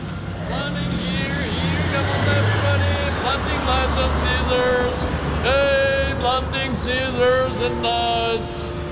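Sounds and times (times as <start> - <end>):
low rumble of passing traffic: 0.0 - 8.9
knife grinder man calling out drawn-out street cries: 0.4 - 8.9.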